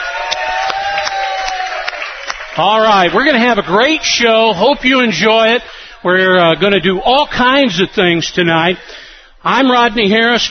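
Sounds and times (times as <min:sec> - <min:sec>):
crowd applauding: 0:00.0 - 0:04.6
crowd cheering: 0:00.0 - 0:07.8
speech: 0:02.6 - 0:10.5.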